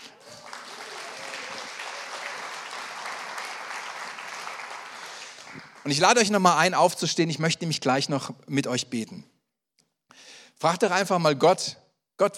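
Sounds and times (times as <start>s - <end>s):
audience clapping: 0.0s - 6.5s
speech: 5.8s - 9.3s, 10.6s - 12.3s.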